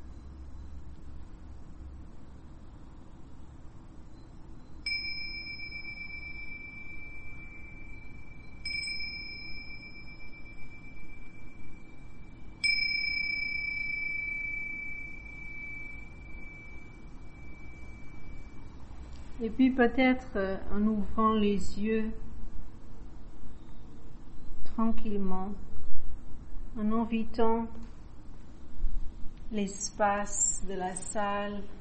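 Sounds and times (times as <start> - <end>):
meditation bell ringing: 4.9 - 18.7
speech: 19.4 - 22.2, 24.8 - 25.7, 26.8 - 27.9, 29.5 - 31.8.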